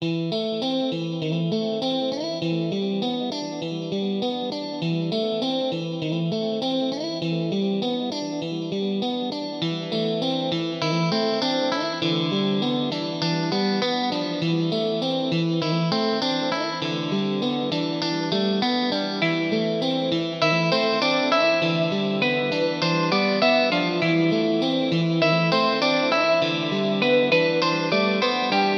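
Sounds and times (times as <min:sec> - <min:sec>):
guitar: 0:00.0 - 0:28.7.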